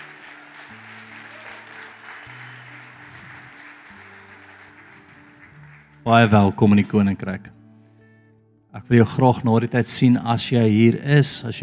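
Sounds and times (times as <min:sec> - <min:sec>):
audience clapping hands: 0:00.0 - 0:06.7
speech: 0:06.0 - 0:07.6, 0:08.8 - 0:11.6.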